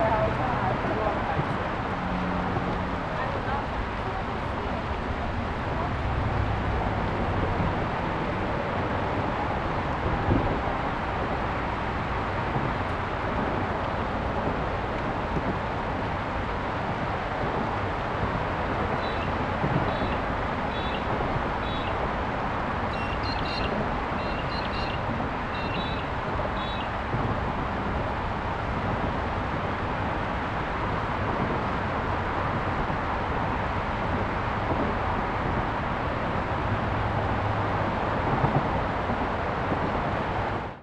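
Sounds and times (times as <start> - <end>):
waterfall at Dight's Falls by a bridge: 0.0 - 40.8.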